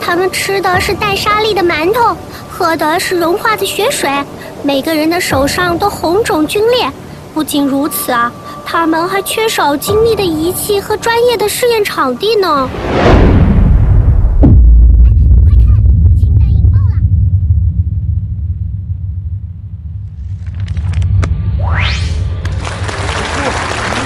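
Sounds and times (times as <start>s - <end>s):
speech: 0.1s - 13.3s
rising whoosh: 12.6s - 15.0s, 17.0s - 23.9s
hydrogen bomb explosion rumble: 12.7s - 23.9s.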